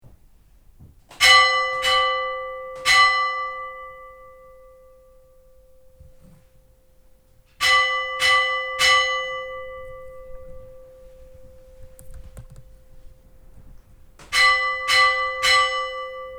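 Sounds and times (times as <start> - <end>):
church bells ringing at Oddakirkja: 1.2 - 5.7, 7.6 - 11.8, 14.3 - 16.3.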